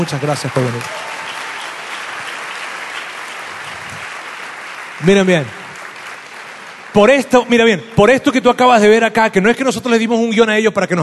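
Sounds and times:
speech: 0:00.0 - 0:01.2, 0:05.0 - 0:05.6, 0:06.9 - 0:11.0
audience applause: 0:00.0 - 0:07.6.

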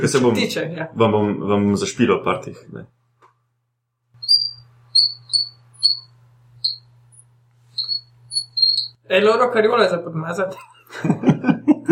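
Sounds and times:
speech: 0:00.0 - 0:03.0, 0:09.1 - 0:11.2
frog song chirping like birds: 0:04.2 - 0:09.0
laughter: 0:10.8 - 0:11.8.

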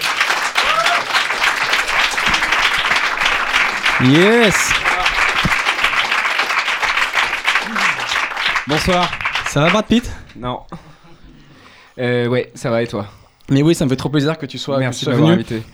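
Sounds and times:
crowd shouting and cheering: 0:00.0 - 0:09.9
crowd clapping: 0:00.0 - 0:15.7
laughter: 0:00.0 - 0:15.7
person whooping excitedly: 0:00.4 - 0:05.8, 0:07.6 - 0:08.2
speech: 0:04.0 - 0:04.9, 0:08.7 - 0:10.8, 0:12.0 - 0:15.7.

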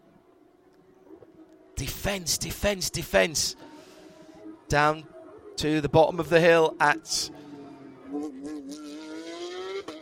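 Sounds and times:
speech: 0:01.8 - 0:03.7, 0:04.7 - 0:07.4
racing car engine accelerating on a race circuit: 0:07.3 - 0:09.9.

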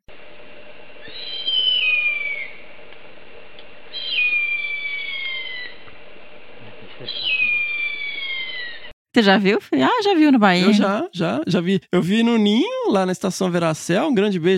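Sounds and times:
harpy eagle calling with whistled cries: 0:01.0 - 0:02.6, 0:03.9 - 0:05.8, 0:07.0 - 0:08.9
speech: 0:09.2 - 0:14.5.

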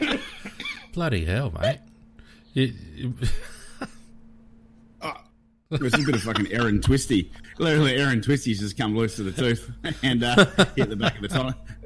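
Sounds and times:
laughter: 0:00.0 - 0:00.9, 0:03.2 - 0:04.1, 0:05.7 - 0:08.1, 0:09.0 - 0:11.8
speech: 0:01.0 - 0:01.9, 0:02.6 - 0:03.9, 0:05.7 - 0:11.8
person clearing throat: 0:05.0 - 0:05.4.

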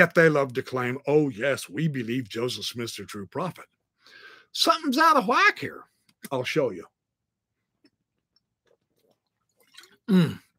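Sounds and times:
speech: 0:00.0 - 0:03.8, 0:04.5 - 0:06.9, 0:10.1 - 0:10.4
sip of water: 0:09.0 - 0:10.4.

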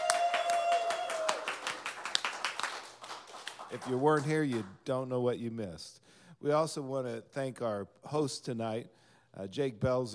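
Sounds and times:
studio audience applause at a live show: 0:00.0 - 0:04.3
speech: 0:03.7 - 0:10.1.

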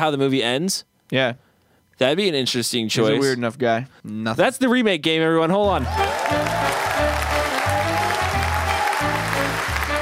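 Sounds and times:
speech: 0:00.0 - 0:07.3
audience applause: 0:05.8 - 0:10.0.

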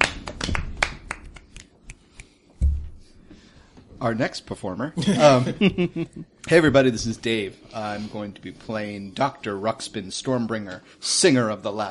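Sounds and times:
one-handed clapping: 0:00.0 - 0:02.4
speech: 0:04.0 - 0:11.8
laughter: 0:05.0 - 0:06.3.

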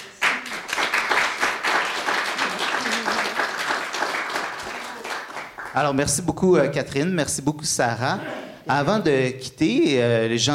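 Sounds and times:
audience applause: 0:00.0 - 0:05.8
speech: 0:05.8 - 0:10.5.

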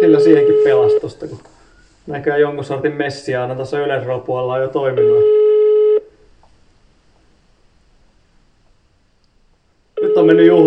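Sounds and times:
telephone tone for a number not in use: 0:00.0 - 0:01.0, 0:05.0 - 0:06.0, 0:10.0 - 0:10.6
speech: 0:00.0 - 0:05.4, 0:10.3 - 0:10.6.

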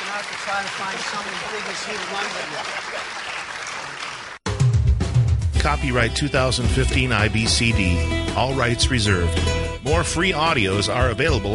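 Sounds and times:
crowd applauding: 0:00.0 - 0:04.4
speech: 0:00.2 - 0:03.3, 0:05.6 - 0:11.5.

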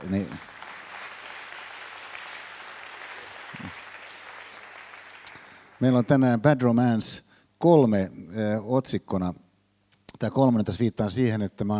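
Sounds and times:
speech: 0:00.0 - 0:00.5, 0:05.8 - 0:09.4, 0:10.2 - 0:11.7
audience applause: 0:00.0 - 0:06.4.

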